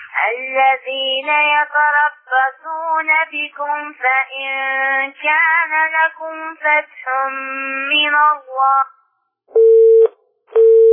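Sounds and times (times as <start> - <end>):
speech: 0.2 - 9.7
telephone busy tone after a call disconnects: 9.6 - 10.9.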